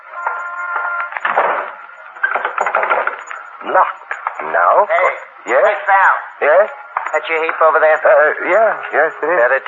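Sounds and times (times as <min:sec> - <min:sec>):
buzzy squeaky door creak: 0:00.2 - 0:03.3
speech: 0:03.7 - 0:09.6.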